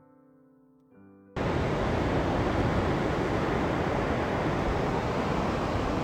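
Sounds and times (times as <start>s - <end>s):
South China Sea waves breaking on shore: 1.4s - 6.0s.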